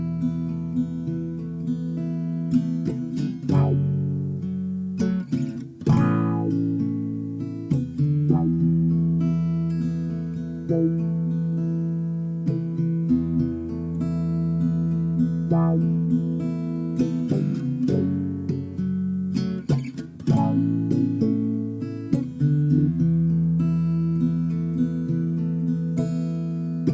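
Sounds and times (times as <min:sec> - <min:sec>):
acoustic guitar arpeggio in E: 0:00.0 - 0:26.9.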